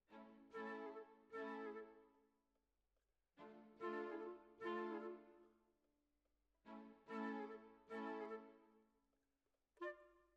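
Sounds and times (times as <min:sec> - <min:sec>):
oboe: 0:00.5 - 0:02.0, 0:03.8 - 0:05.4, 0:07.1 - 0:08.6, 0:09.8 - 0:10.2.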